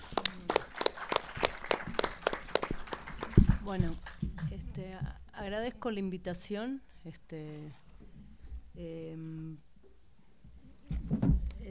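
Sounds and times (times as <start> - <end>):
audience applause: 0.0 - 4.5
speech: 3.7 - 7.8, 8.8 - 9.7.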